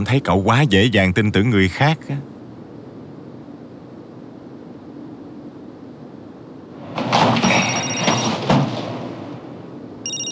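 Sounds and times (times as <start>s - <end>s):
speech: 0.0s - 2.3s
telephone ringing: 7.4s - 8.5s, 10.0s - 10.2s.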